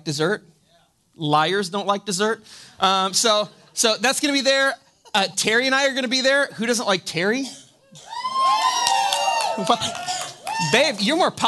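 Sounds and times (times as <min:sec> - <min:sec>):
speech: 0:00.0 - 0:00.6, 0:01.2 - 0:08.1, 0:09.6 - 0:11.4
audience cheering and whooping: 0:08.0 - 0:11.3.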